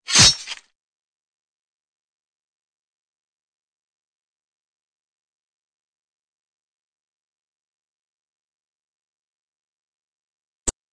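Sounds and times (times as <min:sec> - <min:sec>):
fight sounds: 0:00.1 - 0:00.6.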